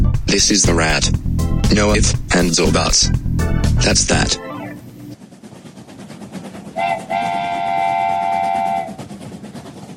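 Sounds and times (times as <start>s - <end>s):
train sound effect: 0.0s - 9.9s
speech: 0.3s - 4.5s
train whistle: 6.8s - 9.1s.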